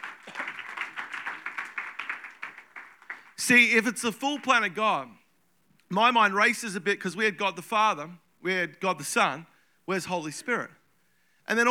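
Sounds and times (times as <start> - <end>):
audience applause: 0.0 - 3.4
speech: 3.4 - 5.2, 5.9 - 10.8, 11.5 - 11.7.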